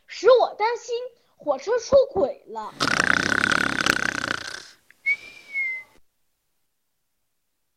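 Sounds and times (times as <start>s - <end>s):
speech: 0.6s - 3.4s
father snoring: 2.7s - 4.8s.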